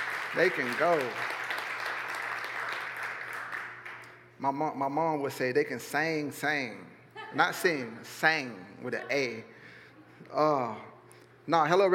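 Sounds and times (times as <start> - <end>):
audience applause: 0.0 - 4.2
low electrical hum: 0.0 - 11.9
speech: 0.4 - 1.4, 4.4 - 9.6, 10.2 - 11.9.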